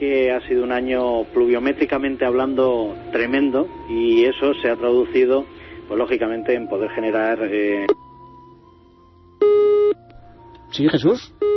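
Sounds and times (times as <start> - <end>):
speech: 0.0 - 8.0, 10.7 - 11.4
faint hum: 0.0 - 11.5
telephone busy tone after a call to a radio show drops: 11.4 - 11.5.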